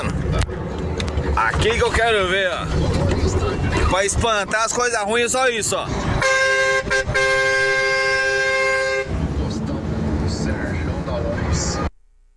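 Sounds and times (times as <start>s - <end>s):
rough rumbling vehicle noise: 0.0s - 12.0s
speech: 1.4s - 6.2s
semi-truck horn honking in the bush: 6.1s - 9.3s.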